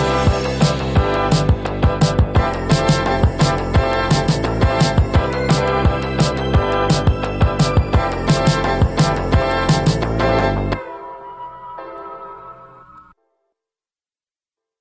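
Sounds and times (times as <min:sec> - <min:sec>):
jazz music in a jazz club: 0:00.0 - 0:13.2.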